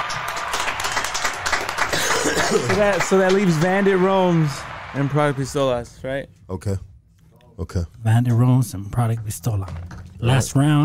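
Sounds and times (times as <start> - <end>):
round of applause: 0.0 - 6.0
speech: 2.6 - 6.9, 7.6 - 10.8.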